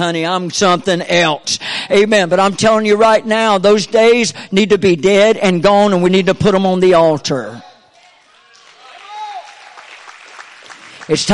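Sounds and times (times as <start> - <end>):
speech: 0.0 - 7.7, 11.1 - 11.3
audience clapping: 8.0 - 11.3.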